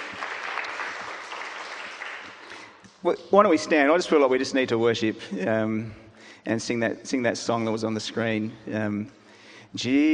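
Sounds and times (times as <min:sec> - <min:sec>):
congregation applauding at a Sunday church service: 0:00.0 - 0:02.8
speech: 0:03.0 - 0:10.1.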